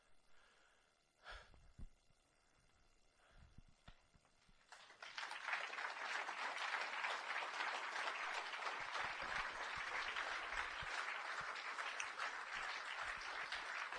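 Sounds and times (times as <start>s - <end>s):
audience clapping after a poetry reading: 4.6s - 13.9s.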